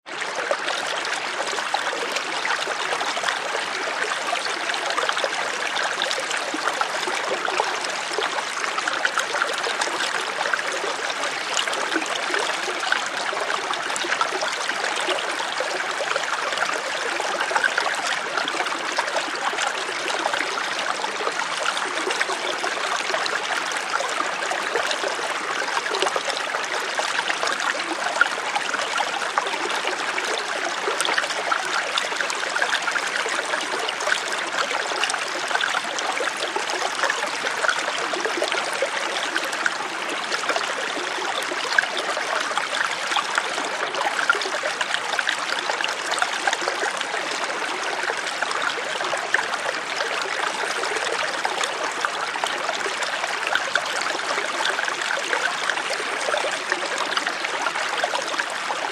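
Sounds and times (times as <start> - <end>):
close brook with heavy flow: 0.1 - 58.8.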